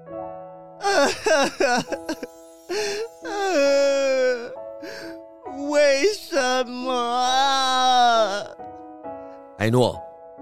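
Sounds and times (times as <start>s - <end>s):
person sobbing and wailing: 0.8s - 8.6s
speech: 1.0s - 3.8s, 9.6s - 10.0s.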